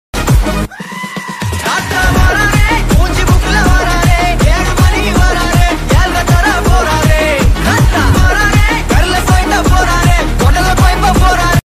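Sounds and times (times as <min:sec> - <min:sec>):
background music ringtone: 0:00.2 - 0:11.6.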